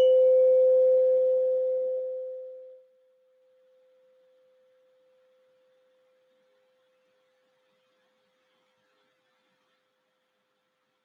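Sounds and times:
meditation bell ringing: 0.0s - 2.8s.

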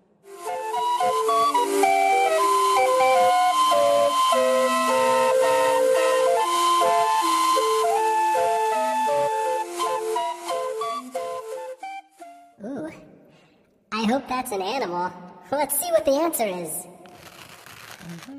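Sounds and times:
calliope playing a melody through steam-blown tuned whistles: 0.3s - 11.9s
speech: 14.4s - 16.9s, 18.1s - 18.3s.

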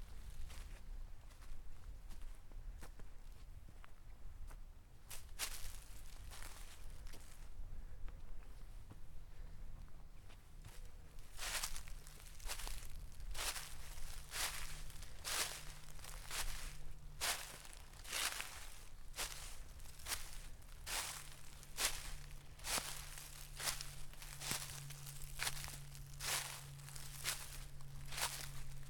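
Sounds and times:
low steady hum: 0.0s - 28.8s
footsteps crunching through dry oak leaf litter in the Black Mountains: 5.1s - 7.4s, 10.7s - 28.8s.

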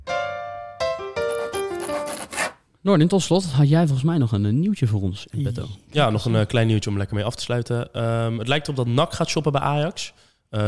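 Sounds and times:
building renovation rasping sawing strokes: 1.3s - 2.6s
speech: 2.2s - 10.6s.

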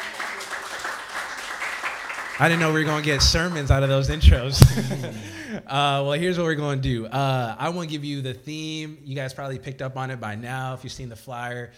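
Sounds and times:
crowd applauding: 0.0s - 4.9s
speech: 2.4s - 11.7s
laughter: 4.4s - 5.7s.

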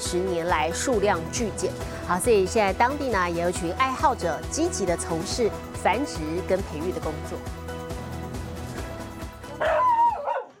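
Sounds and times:
speech: 0.1s - 7.6s
Hokkaido dog puppies yipping: 9.6s - 10.5s.

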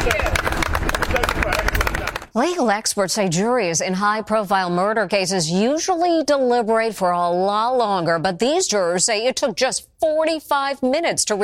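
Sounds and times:
speech: 0.0s - 0.4s, 2.4s - 11.4s
bystanders applauding departing jurors: 0.0s - 2.3s.

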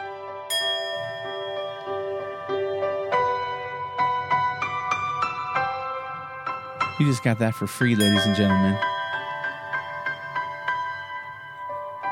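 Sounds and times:
sustained piano notes: 0.0s - 12.1s
bell ringing: 0.5s - 4.4s, 7.8s - 12.1s
speech: 7.0s - 8.9s.

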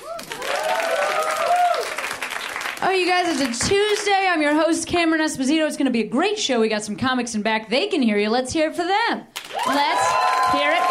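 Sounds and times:
cheers and whoops: 0.0s - 2.2s, 9.4s - 10.8s
audience applause: 0.0s - 3.6s, 9.4s - 10.8s
speech: 2.8s - 10.8s.

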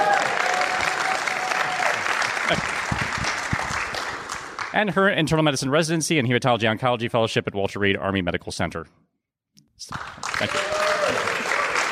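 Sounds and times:
audience applause: 0.0s - 4.8s, 9.9s - 11.8s
speech: 2.5s - 3.1s, 4.7s - 9.0s, 9.8s - 11.3s.

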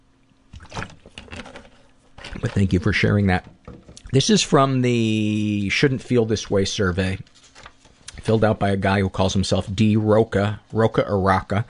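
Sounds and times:
person taking a swig of water: 0.5s - 2.5s
speech: 2.3s - 7.3s, 8.2s - 11.6s.

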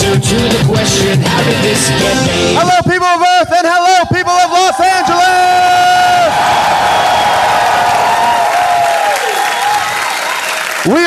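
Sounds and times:
speech: 0.2s - 3.9s
live theater audience cheering and clapping at Largo in Los Angeles: 4.7s - 11.0s.

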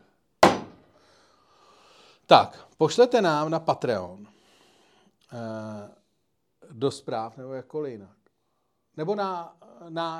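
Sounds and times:
door slamming shut: 0.4s - 0.8s
speech: 2.3s - 4.4s, 5.3s - 6.0s, 6.7s - 8.2s, 9.0s - 10.1s.

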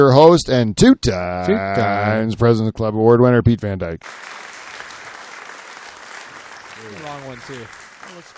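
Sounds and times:
speech: 0.0s - 4.4s, 7.3s - 8.3s
audience applause: 4.0s - 8.3s.

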